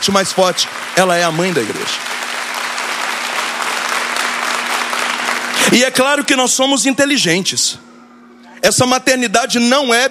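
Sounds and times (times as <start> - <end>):
speech: 0.0 - 2.2, 5.7 - 7.9, 8.6 - 10.0
audience applause: 0.0 - 5.9.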